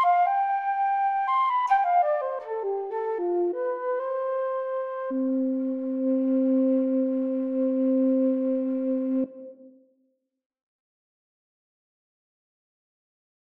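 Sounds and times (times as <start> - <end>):
quena flute: 0.0 - 9.9.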